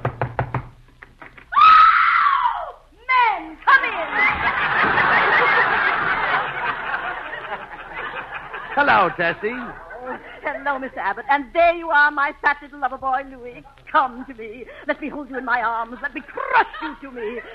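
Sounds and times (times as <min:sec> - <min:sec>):
knocking on a house door: 0:00.0 - 0:00.8
excited voices shrieking and laughing: 0:01.5 - 0:10.5
speech: 0:08.8 - 0:17.5.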